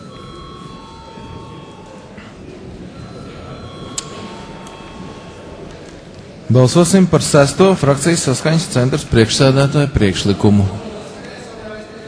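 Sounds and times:
parliament bell rung before voting: 0.0s - 2.3s, 2.9s - 5.8s
low murmur of room noise: 0.0s - 12.0s
speech: 6.5s - 10.8s.

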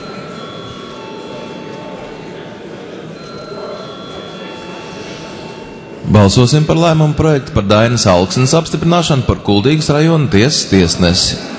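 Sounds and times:
parliament session bell ringing: 0.0s - 10.7s
speech: 6.1s - 11.5s.

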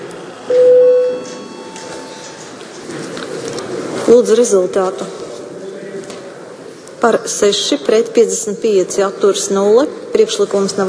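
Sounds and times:
low murmur: 0.0s - 10.8s
parliament voting bell electronic tone: 0.5s - 2.3s
speech: 4.1s - 5.1s, 7.0s - 10.8s.

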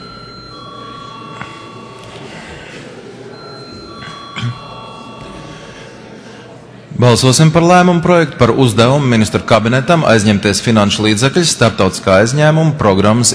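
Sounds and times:
parliament chamber vote bell ringing: 0.0s - 6.2s
low murmur of noise: 0.0s - 13.3s
speech: 7.0s - 13.3s.

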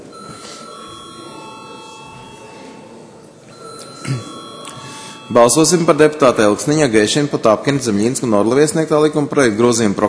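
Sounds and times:
parliament session electronic bell tone ringing: 0.0s - 7.2s
low murmur: 0.0s - 10.0s
speech: 5.3s - 10.0s.

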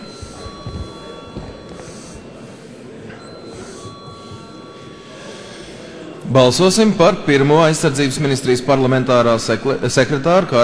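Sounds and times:
parliament electric call bell ringing: 0.0s - 5.6s
speech: 6.3s - 10.6s.

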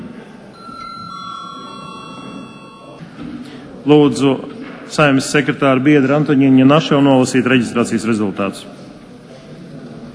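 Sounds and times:
low murmur: 0.0s - 10.1s
meeting chairman's bell ringing: 0.6s - 3.2s
speech: 3.8s - 8.8s.

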